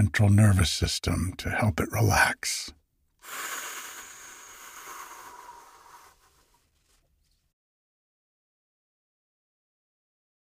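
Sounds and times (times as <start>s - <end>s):
speech: 0.0s - 3.6s
slow exhale through pursed lips: 3.2s - 6.7s.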